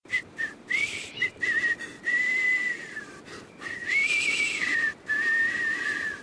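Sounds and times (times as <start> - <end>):
whistle: 0.1 - 6.2.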